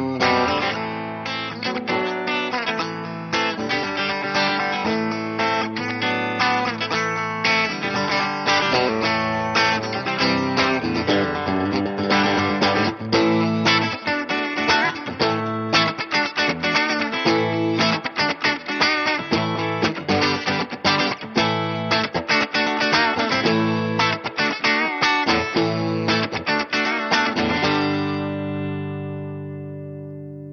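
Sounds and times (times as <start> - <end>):
Telecaster electric guitar through a Vox AC15 amplifier: 0.0 - 30.5.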